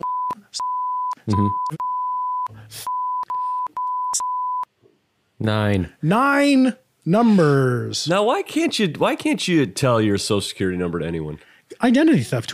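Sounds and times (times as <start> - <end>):
censor bleeps masking spoken social security number digits: 0.0 - 4.7
speech: 1.3 - 1.8, 5.4 - 12.5.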